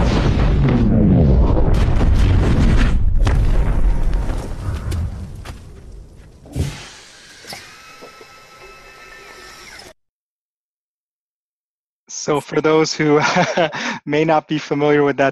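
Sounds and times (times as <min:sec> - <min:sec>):
Jericho missile explosion in a movie scene: 0:00.0 - 0:05.4
smaller crackles: 0:00.0 - 0:09.9
speech: 0:12.2 - 0:15.2
laughter: 0:12.4 - 0:14.1.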